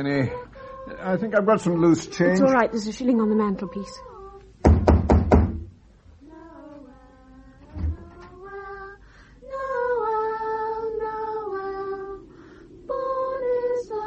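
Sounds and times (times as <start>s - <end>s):
speech: 0.0s - 4.1s
sustained singing voices: 0.0s - 4.6s, 6.1s - 14.0s
knocking on a door: 4.6s - 5.7s.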